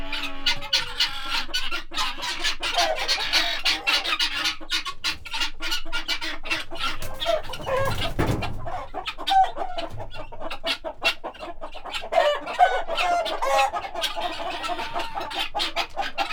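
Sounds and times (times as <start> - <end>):
guineafowl chatter: 0.0 - 16.3
low thud: 6.8 - 9.0.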